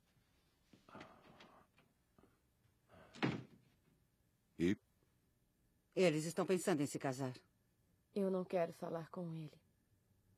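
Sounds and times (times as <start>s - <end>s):
door being pushed closed: 3.1s - 3.6s
speech: 4.6s - 4.8s, 6.0s - 7.5s, 8.2s - 9.6s.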